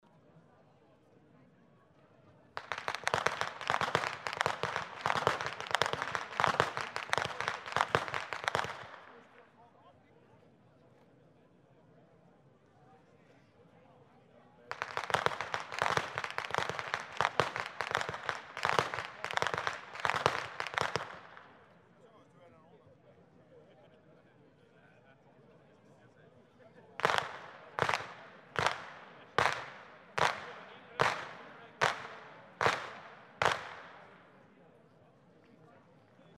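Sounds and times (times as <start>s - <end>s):
youth whip cracking: 2.6s - 9.2s, 14.8s - 21.5s, 27.0s - 34.1s.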